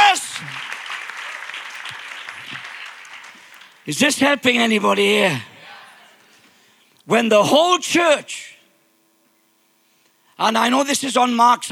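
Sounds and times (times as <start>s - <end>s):
audience clapping: 0.0s - 4.1s
speech: 3.9s - 5.5s, 7.1s - 8.4s, 10.4s - 11.7s.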